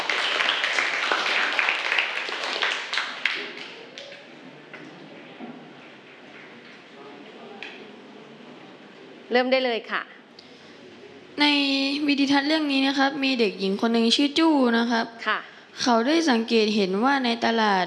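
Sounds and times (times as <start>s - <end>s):
classroom applause: 0.0s - 4.5s
speech: 9.3s - 10.2s, 11.4s - 17.8s.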